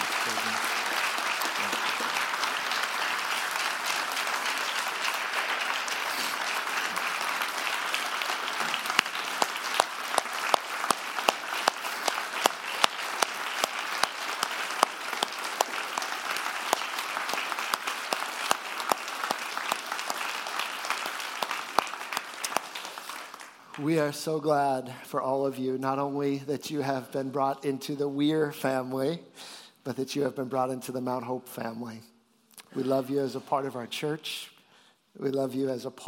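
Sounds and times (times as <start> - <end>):
sustained audience applause: 0.0 - 24.0
speech: 23.8 - 32.1, 32.7 - 34.5, 35.2 - 36.0.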